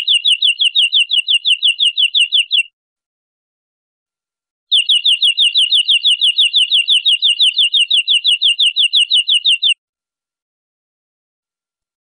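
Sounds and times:
European greenfinch buzzy trill: 0.0 - 2.7, 4.7 - 9.8.

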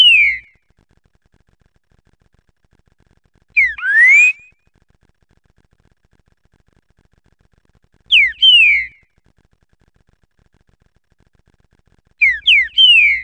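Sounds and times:
green-winged saltator song of rich slurred rising and falling whistles: 0.0 - 0.6, 3.6 - 4.6, 8.1 - 9.1, 12.2 - 13.2.

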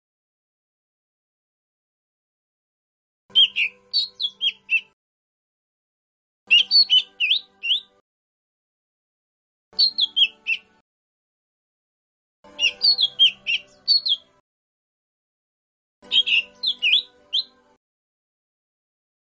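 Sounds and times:
lesser green leafbird whistled song: 3.3 - 5.0, 6.5 - 8.0, 9.8 - 10.7, 12.5 - 14.3, 16.0 - 17.6.

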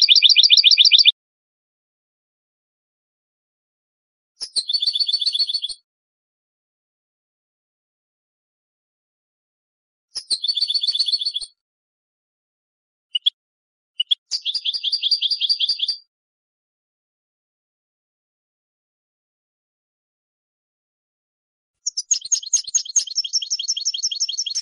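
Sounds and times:
European goldfinch song: 0.0 - 1.2, 4.4 - 5.8, 10.2 - 11.6, 13.1 - 13.4, 14.0 - 16.1, 21.8 - 24.5.

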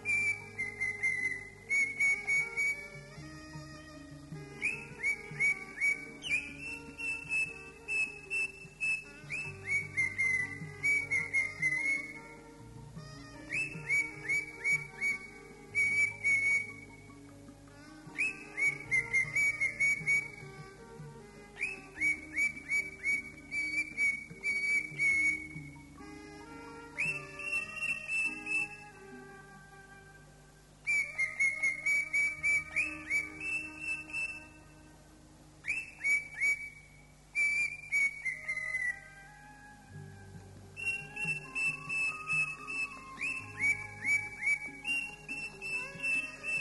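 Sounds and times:
Greater green leafbird singing: 0.0 - 3.6, 4.3 - 12.4, 13.2 - 17.2, 18.1 - 20.6, 21.6 - 26.1, 27.0 - 29.0, 30.8 - 34.9, 35.6 - 40.0, 40.7 - 46.6.

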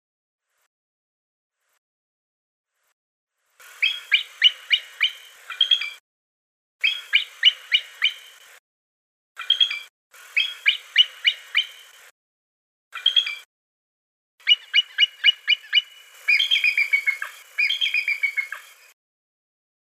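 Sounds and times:
bald eagle calling: 3.8 - 6.0, 6.8 - 8.4, 9.4 - 11.9, 14.4 - 18.8.

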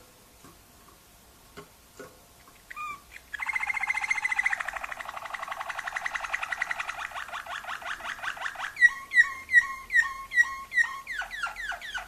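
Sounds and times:
canary singing: 2.4 - 12.0.

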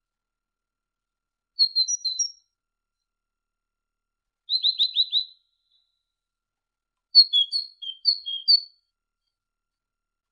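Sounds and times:
great tit song: 1.6 - 3.1, 4.5 - 6.2, 7.1 - 9.4.

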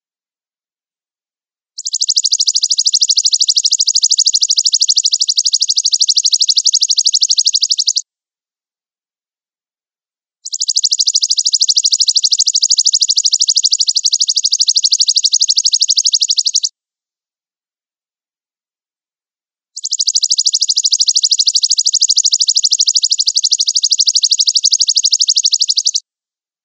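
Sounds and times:
sunbird song used as a lure recording: 1.8 - 8.0, 10.4 - 16.7, 19.8 - 26.0.

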